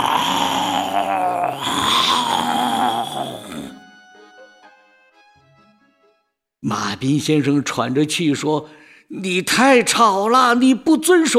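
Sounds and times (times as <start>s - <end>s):
human voice imitating a lion roar: 0.0s - 3.8s
speech: 6.7s - 11.3s.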